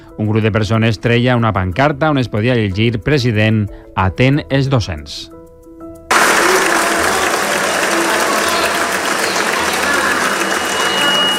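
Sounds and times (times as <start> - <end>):
speech: 0.2 - 5.4
auditorium audience applause: 6.1 - 11.3.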